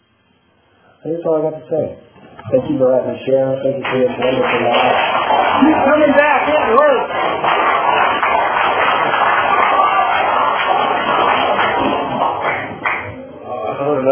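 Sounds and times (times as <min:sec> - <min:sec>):
speech: 0:01.0 - 0:07.7
audience applause: 0:03.8 - 0:13.2.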